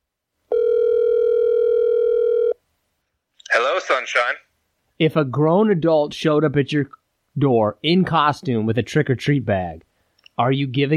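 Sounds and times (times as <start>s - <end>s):
telephone dial tone: 0.5s - 2.6s
speech: 4.0s - 10.9s.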